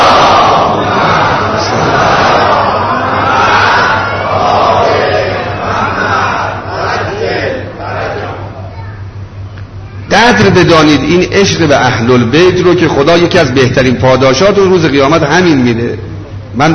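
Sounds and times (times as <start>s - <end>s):
congregation reciting salawat in unison in a mosque during Ramadan: 0.0s - 8.6s
speech: 10.4s - 16.7s.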